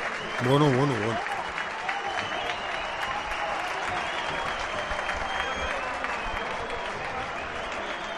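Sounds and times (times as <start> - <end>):
stadium crowd ovation: 0.0 - 8.1
speech: 0.4 - 1.3.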